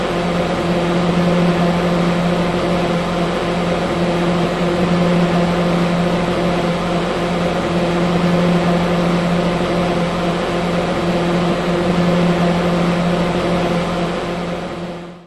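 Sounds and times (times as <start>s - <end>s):
small household fan running with a buzz: 0.0s - 15.2s.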